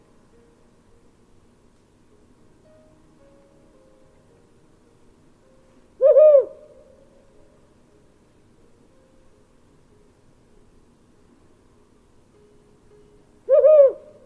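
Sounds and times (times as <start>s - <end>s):
calm night forest ambience: 0.0s - 14.2s
mystical owl hooting in a calm night forest: 6.0s - 7.3s, 13.5s - 14.2s.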